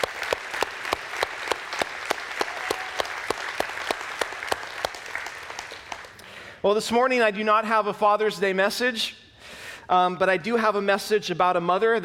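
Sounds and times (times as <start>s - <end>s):
audience applauding: 0.0s - 6.2s
speech: 6.6s - 9.2s, 9.9s - 12.0s.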